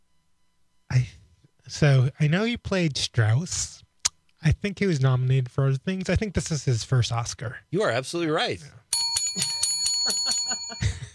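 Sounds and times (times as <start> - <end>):
speech: 1.7 - 3.8, 4.4 - 8.8, 9.4 - 11.0
thin, feeble little bell dinging: 8.9 - 11.1.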